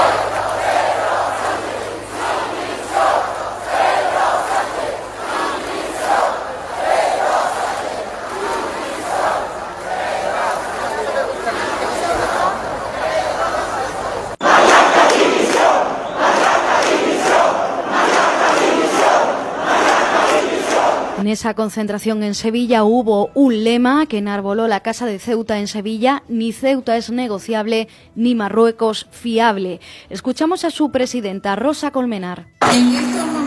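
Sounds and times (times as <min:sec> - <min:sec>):
crowd shouting demanding resignation: 0:00.0 - 0:21.2
speech: 0:21.4 - 0:33.3.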